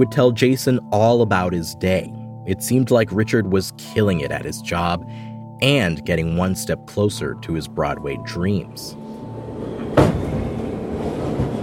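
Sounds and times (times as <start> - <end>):
speech: 0.0 - 10.1
subway train rumbling with a low rattling drone: 9.0 - 11.6
single sharp clunk: 9.8 - 10.4.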